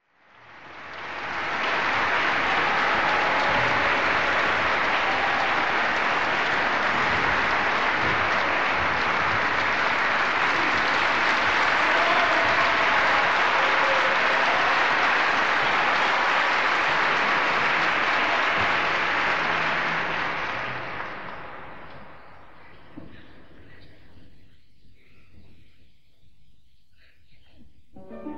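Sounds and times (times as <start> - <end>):
audience applause at Teatro Avenida: 0.2 - 22.6.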